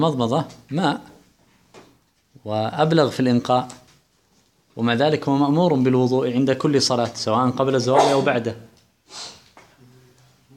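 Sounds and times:
speech: 0:00.0 - 0:01.1, 0:02.4 - 0:03.8, 0:04.8 - 0:09.4
sneeze: 0:07.9 - 0:08.4, 0:09.1 - 0:09.5.

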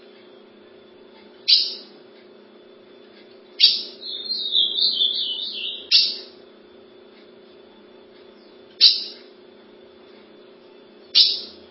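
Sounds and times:
faint low hum: 0:00.0 - 0:11.6
ultramarine grosbeak warbled whistle: 0:03.6 - 0:06.2.

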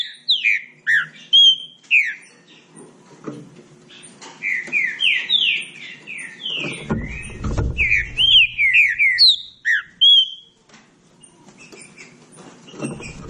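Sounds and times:
Green-winged saltator song: 0:00.0 - 0:02.8, 0:03.9 - 0:10.6.

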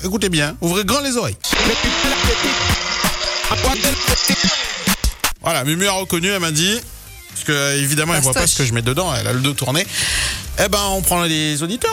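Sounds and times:
speech: 0:00.0 - 0:04.8, 0:05.4 - 0:11.9
electric blender running: 0:01.5 - 0:05.4.

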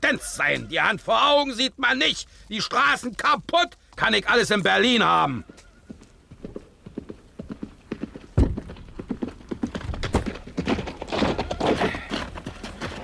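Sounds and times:
speech: 0:00.1 - 0:05.6
horse hooves clopping on hard ground near the city gate of Dresden: 0:02.4 - 0:13.0
sharp thud: 0:08.4 - 0:08.8.

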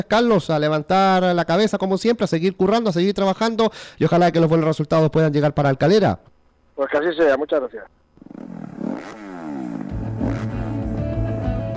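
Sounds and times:
speech: 0:00.0 - 0:09.3
motocross motorcycle engine revving at Spanish Motocross Championship at Cerro Negro, Talavera de la Reina: 0:08.2 - 0:11.7.

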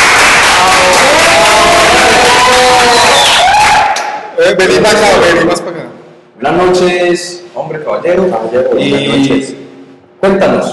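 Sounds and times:
audience applause: 0:00.0 - 0:04.1
speech: 0:04.4 - 0:09.6, 0:10.2 - 0:10.7.

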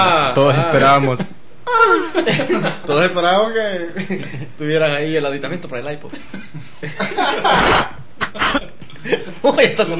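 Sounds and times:
laughter: 0:00.0 - 0:02.9, 0:06.1 - 0:09.9
speech: 0:00.0 - 0:09.9
person coughing fit: 0:07.5 - 0:08.7.

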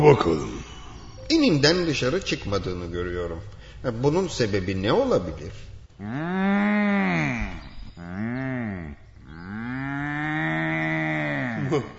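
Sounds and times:
speech: 0:00.0 - 0:00.6, 0:01.3 - 0:08.3, 0:11.7 - 0:11.9
bull bellowing: 0:06.0 - 0:11.8.

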